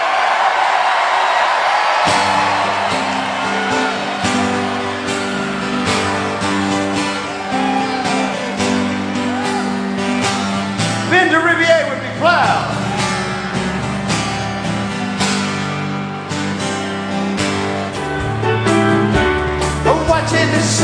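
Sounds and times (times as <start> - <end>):
crowd cheering with whoops and shouts: 0.0 - 20.8.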